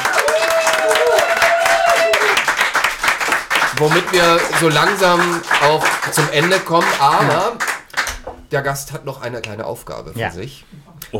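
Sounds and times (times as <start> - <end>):
audience applause: 0.0 - 8.2
speech: 3.8 - 7.7, 8.5 - 11.1.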